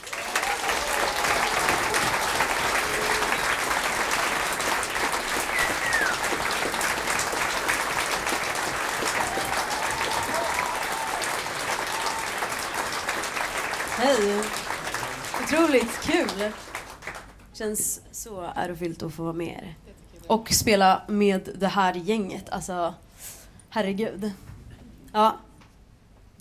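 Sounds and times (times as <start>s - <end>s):
audience applause: 0.0s - 17.5s
speech: 15.7s - 16.6s, 17.6s - 24.4s, 25.2s - 25.4s.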